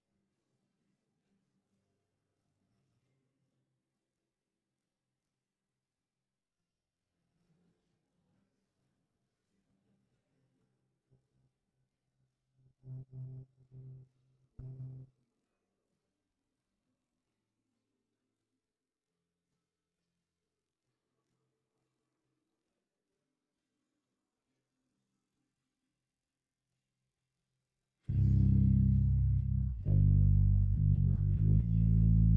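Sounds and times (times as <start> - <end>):
bass stem: 14.6 - 15.0, 28.1 - 32.3.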